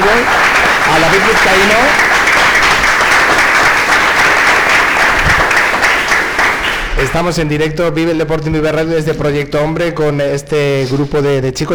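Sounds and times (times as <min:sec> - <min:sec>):
audience applause: 0:00.0 - 0:07.3
speech: 0:01.2 - 0:02.1, 0:07.1 - 0:11.7.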